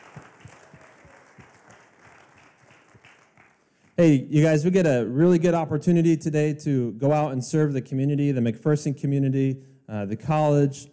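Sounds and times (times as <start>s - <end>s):
room full of people applauding together: 0.0s - 4.0s
speech: 4.0s - 10.9s.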